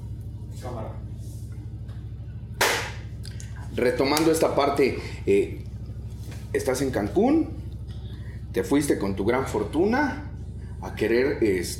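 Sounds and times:
single hand clap: 2.6 - 3.0
speech: 3.8 - 5.7, 6.5 - 7.6, 8.5 - 11.7.

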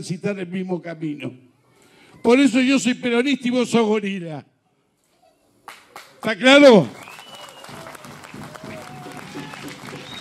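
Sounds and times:
speech: 0.0 - 1.5, 2.2 - 4.5, 6.2 - 7.0
crowd applauding: 5.6 - 10.1
scattered shouts and whistles: 6.7 - 10.1.

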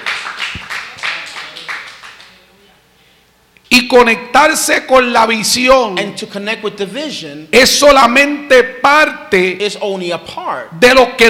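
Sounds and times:
crowd clapping in rhythm: 0.0 - 2.4
speech: 3.7 - 11.2.

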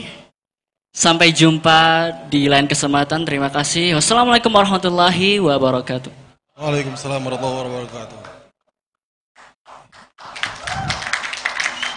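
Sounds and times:
speech: 1.0 - 8.3
audience clapping: 9.4 - 11.9.

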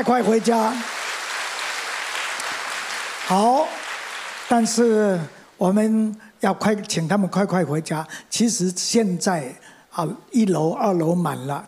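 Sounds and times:
speech: 0.0 - 1.0, 3.3 - 3.8, 4.5 - 11.6
audience applauding: 0.0 - 5.0.

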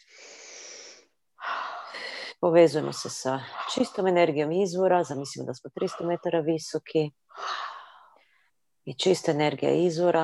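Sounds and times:
deep breath in and out during a guided breathing exercise: 0.0 - 2.4, 7.4 - 8.5
speech: 2.4 - 7.6, 8.8 - 10.2.

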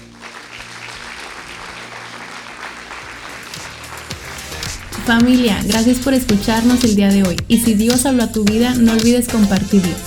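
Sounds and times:
audience applause: 0.0 - 7.4
low musical hum: 1.6 - 10.0
speech: 5.1 - 10.0.

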